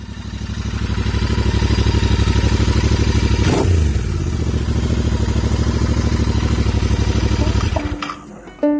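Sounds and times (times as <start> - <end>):
motorcycle engine running: 0.0 - 8.2
sharp clank: 7.4 - 8.7.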